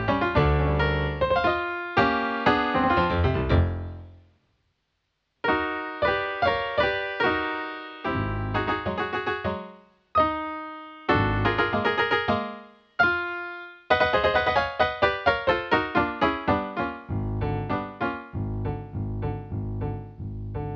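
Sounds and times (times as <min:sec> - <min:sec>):
piano: 0:00.0 - 0:04.3, 0:05.4 - 0:20.7.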